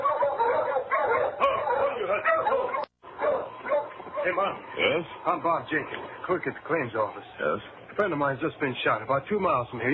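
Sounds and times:
sled dog team barking: 0.0s - 7.5s
speech: 4.3s - 9.9s.

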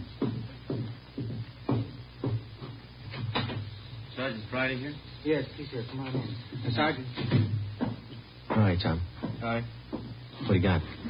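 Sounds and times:
knocking at a back door: 0.2s - 3.7s, 6.1s - 10.2s
speech: 4.2s - 7.5s, 8.7s - 9.8s, 10.4s - 11.0s.

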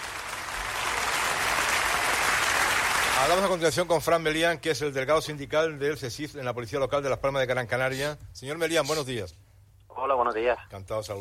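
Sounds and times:
applause: 0.0s - 3.7s
speech: 3.2s - 11.1s.

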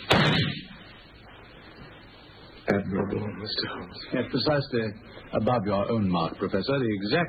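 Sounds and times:
pistol shot fired into a wall: 0.0s - 0.7s
speech: 2.7s - 7.2s.

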